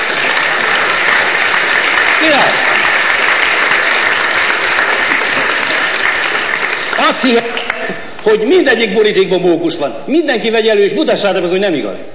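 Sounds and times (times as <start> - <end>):
audience applause: 0.0 - 7.9
speech: 7.1 - 12.1.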